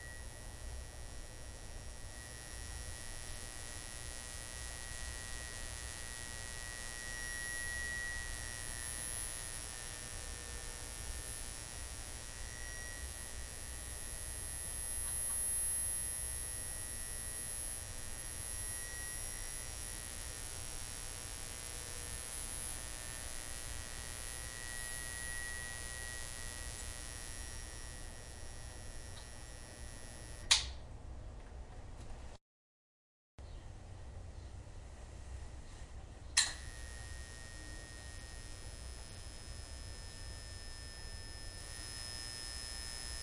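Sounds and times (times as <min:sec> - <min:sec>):
fluorescent light buzz and ring: 0:00.0 - 0:32.4, 0:33.4 - 0:43.2
light switch click: 0:30.5 - 0:30.8, 0:36.4 - 0:36.6.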